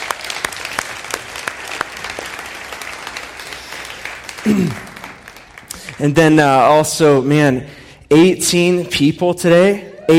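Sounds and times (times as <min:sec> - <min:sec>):
audience applause: 0:00.0 - 0:06.2
speech: 0:04.4 - 0:04.9, 0:06.0 - 0:10.1.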